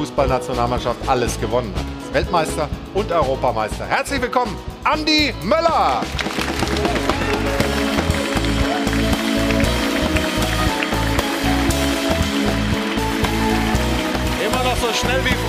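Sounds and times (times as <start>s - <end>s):
speech: 0.0s - 7.7s, 14.6s - 15.4s
studio audience applause: 5.8s - 15.4s.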